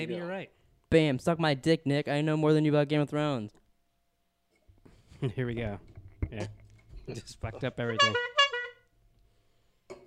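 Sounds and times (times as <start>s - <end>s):
speech: 0.0s - 3.6s, 5.2s - 8.3s
squeezed horn honk: 7.8s - 8.9s.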